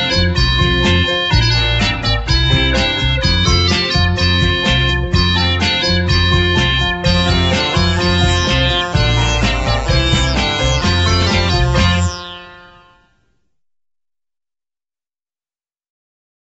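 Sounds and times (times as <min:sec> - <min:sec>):
instrumental music: 0:00.0 - 0:13.2.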